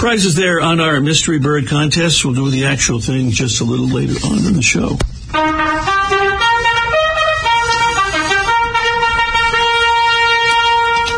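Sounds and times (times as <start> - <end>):
speech: 0.0 - 5.7
brassy royal salute fanfare: 5.3 - 11.1.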